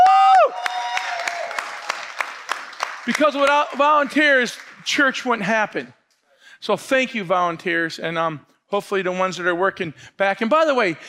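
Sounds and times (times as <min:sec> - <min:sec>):
audience applause for volunteers: 0:00.0 - 0:05.0
speech: 0:03.1 - 0:06.0, 0:06.6 - 0:11.0.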